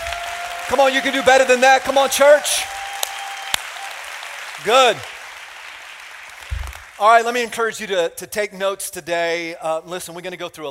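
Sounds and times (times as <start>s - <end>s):
sharp loud claps: 0.0s - 7.0s
audience applause: 0.0s - 7.4s
speech: 0.7s - 2.8s, 4.6s - 5.1s, 7.0s - 10.7s.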